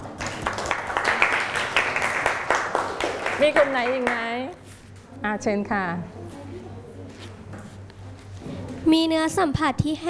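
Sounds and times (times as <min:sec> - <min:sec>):
group of students clapping in a room: 0:00.0 - 0:04.3
speech: 0:03.4 - 0:04.6, 0:05.2 - 0:06.4, 0:08.8 - 0:10.0.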